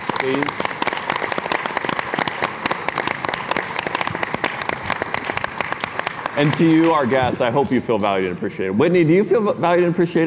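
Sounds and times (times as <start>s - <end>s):
audience round of applause: 0.0s - 7.4s
speech: 0.2s - 0.7s, 6.4s - 10.2s.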